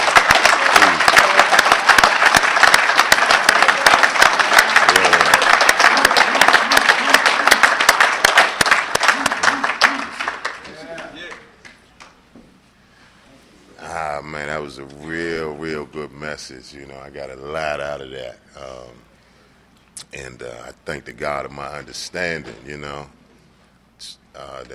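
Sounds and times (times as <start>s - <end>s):
sustained audience applause: 0.0s - 11.5s
speech: 15.9s - 19.1s, 20.1s - 23.2s.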